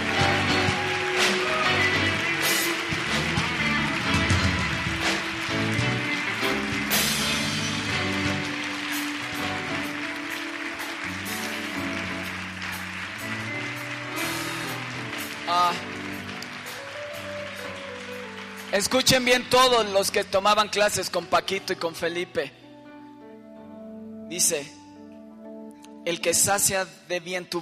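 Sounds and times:
audience applauding loudly: 0.0s - 21.2s
music playing: 0.0s - 27.6s
speech: 18.8s - 22.6s, 24.3s - 24.8s, 26.0s - 27.6s.

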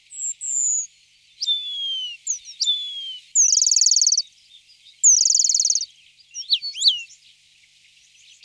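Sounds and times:
Eurasian penduline tit thin high whistles sliding downward: 0.5s - 4.2s, 5.1s - 7.1s.

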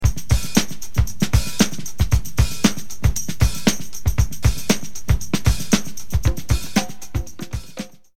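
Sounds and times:
music beat: 0.0s - 8.1s.

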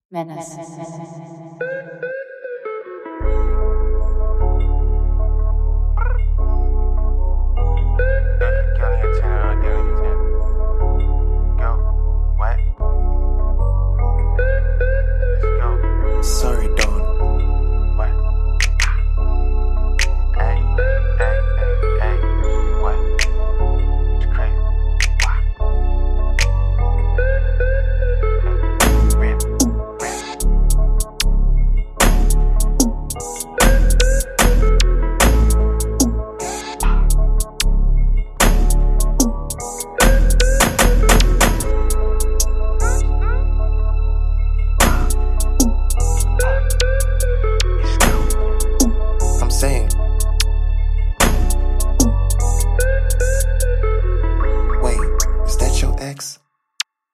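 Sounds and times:
instrumental music: 1.2s - 56.0s.

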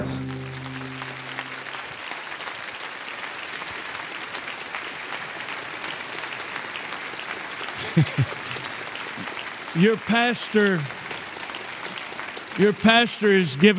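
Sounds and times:
audience applause welcoming a guest speaker: 0.0s - 13.7s
laughter: 7.8s - 10.9s
speech: 8.0s - 8.4s, 9.8s - 11.0s, 12.6s - 13.7s.

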